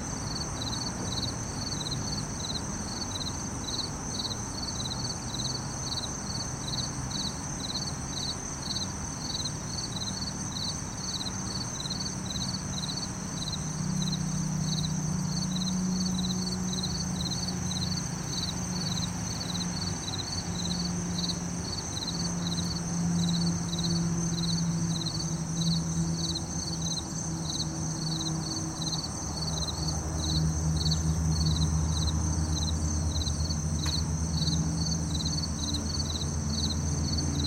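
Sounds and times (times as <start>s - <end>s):
crickets and cicadas singing: 0.0s - 37.4s.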